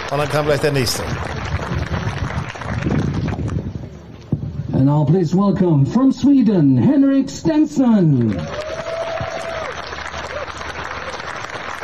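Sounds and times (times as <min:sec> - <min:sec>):
golf spectators applauding: 0:00.0 - 0:03.6, 0:08.2 - 0:11.8
speech: 0:00.1 - 0:01.7, 0:04.8 - 0:08.6.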